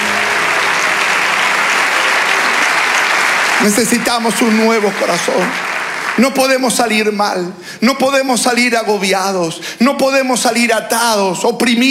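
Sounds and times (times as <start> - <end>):
audience applause: 0.0 - 7.2
speech: 3.6 - 11.8.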